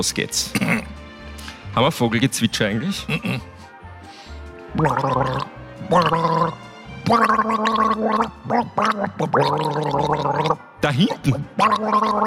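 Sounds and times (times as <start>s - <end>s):
speech: 0.0s - 0.9s, 1.8s - 3.6s, 4.7s - 12.2s
person gargling a melody: 4.8s - 12.2s.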